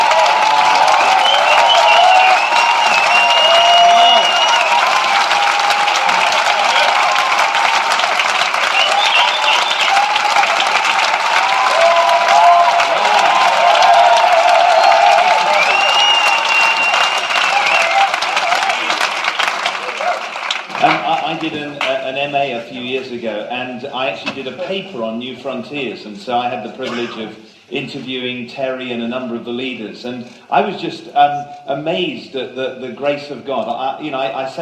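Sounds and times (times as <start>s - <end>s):
cheering and overlapping voices: 0.0s - 22.0s
audience applause: 0.0s - 22.2s
speech: 24.7s - 34.5s.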